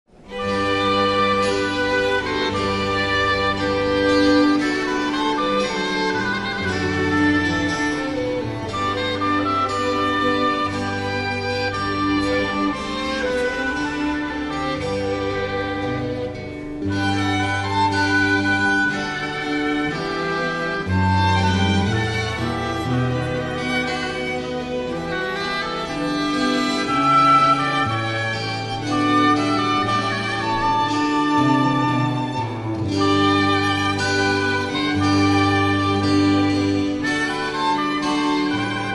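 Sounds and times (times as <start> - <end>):
instrumental piece: 0.1 - 38.9.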